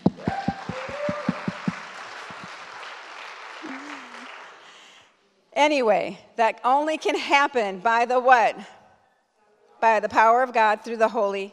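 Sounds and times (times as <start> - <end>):
audience applause: 0.0 - 4.9
speech: 5.6 - 8.8, 9.8 - 11.5.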